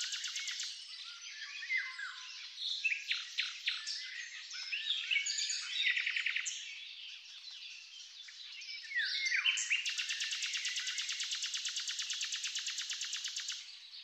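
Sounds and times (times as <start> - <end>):
birds: 0.0 - 14.0.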